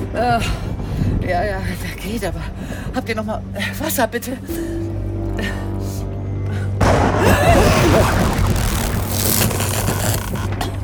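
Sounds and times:
speech: 0.2s - 5.7s
electrical short circuit crash: 6.8s - 10.5s.

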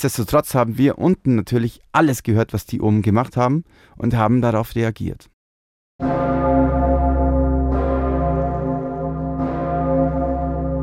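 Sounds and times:
speech: 0.0s - 5.3s, 6.0s - 6.2s
large cathedral bell tolling: 6.0s - 10.8s.

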